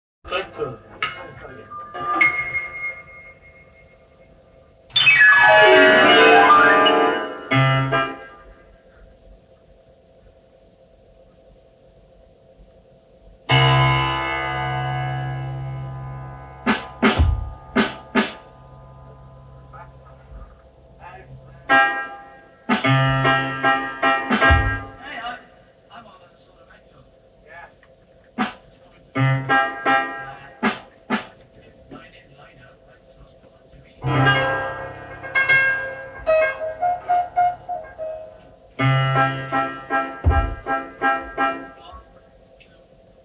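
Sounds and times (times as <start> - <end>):
instrumental music: 0.3 - 9.0, 13.5 - 25.4, 28.3 - 32.1, 34.0 - 42.2.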